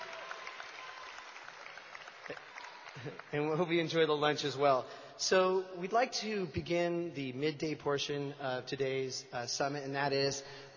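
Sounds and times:
audience applause: 0.0 - 3.9
speech: 2.3 - 10.7.

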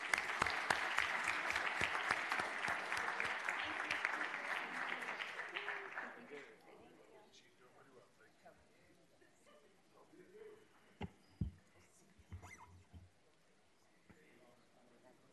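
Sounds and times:
audience clapping: 0.0 - 6.6.

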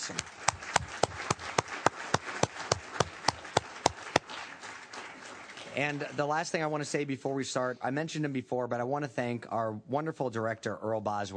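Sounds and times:
speech: 0.0 - 0.4, 5.8 - 11.3
audience applause with crisp claps: 0.0 - 6.8.

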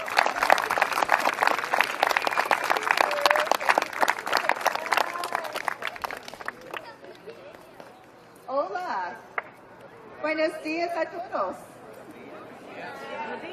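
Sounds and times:
audience applause welcoming a school superintendent at a school year opening event: 0.0 - 7.6
crowd chatter: 0.0 - 13.5
speech: 10.4 - 11.7.

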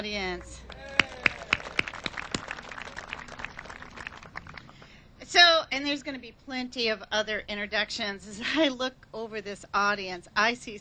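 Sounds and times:
speech: 0.0 - 1.0, 5.3 - 10.7
scattered audience applause for council members at a Kirkland civic gathering: 0.4 - 5.0.

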